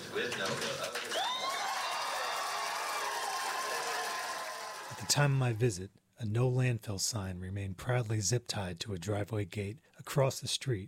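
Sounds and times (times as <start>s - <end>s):
crowd cheering and applauding: 0.0s - 5.4s
speech: 0.2s - 1.1s, 5.1s - 10.8s.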